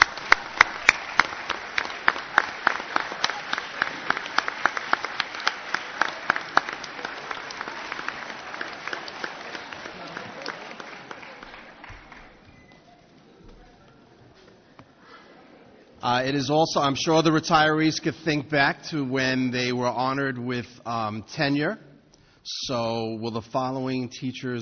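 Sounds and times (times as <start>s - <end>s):
audience applause for retirees: 0.0s - 13.0s
speech: 16.1s - 21.8s, 22.4s - 24.6s.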